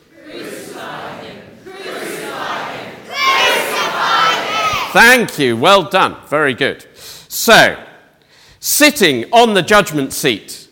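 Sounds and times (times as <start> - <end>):
crowd shouting loudly: 0.1 - 5.0
speech: 5.0 - 7.9, 8.6 - 10.6.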